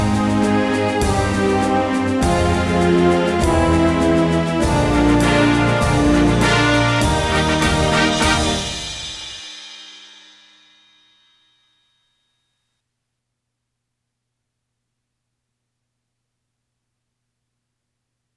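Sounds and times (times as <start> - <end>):
song backing track: 0.0 - 9.4.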